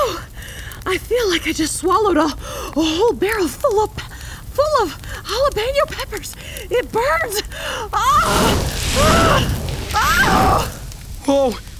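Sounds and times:
speech: 0:00.9 - 0:11.7
fire-breathing blast: 0:03.9 - 0:11.7.

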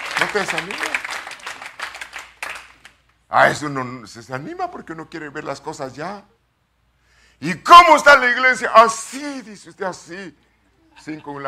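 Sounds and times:
audience applauding: 0:00.0 - 0:03.0
speech: 0:00.2 - 0:01.0, 0:03.3 - 0:06.3, 0:07.4 - 0:10.4, 0:11.0 - 0:11.4.

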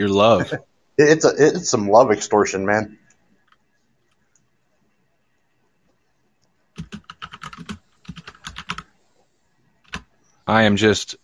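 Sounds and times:
speech: 0:00.0 - 0:03.0, 0:10.5 - 0:11.2
rapid typing on a computer keyboard: 0:06.8 - 0:08.9, 0:09.8 - 0:10.1.

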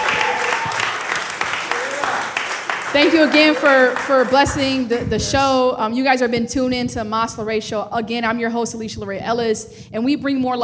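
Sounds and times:
audience applause: 0:00.0 - 0:04.9
speech: 0:03.0 - 0:10.6.

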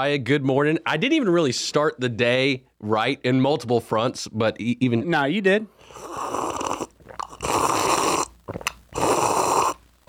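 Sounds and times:
speech: 0:00.0 - 0:06.6
gulping coffee: 0:05.8 - 0:10.0.

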